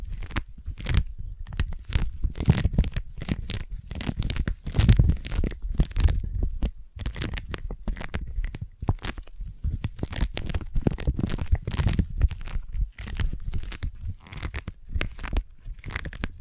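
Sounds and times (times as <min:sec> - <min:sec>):
sticky tapping and peeling: 0:00.0 - 0:16.3.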